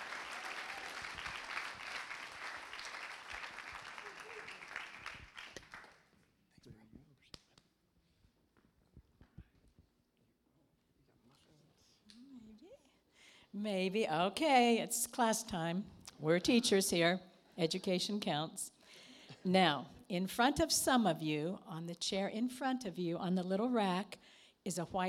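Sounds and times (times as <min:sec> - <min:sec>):
audience applause welcoming speakers at a morning gathering: 0:00.0 - 0:06.0
speech: 0:13.6 - 0:18.8, 0:19.4 - 0:25.0.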